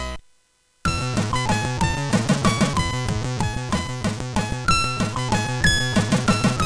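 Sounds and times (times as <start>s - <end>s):
German dance music: 0.9s - 6.6s.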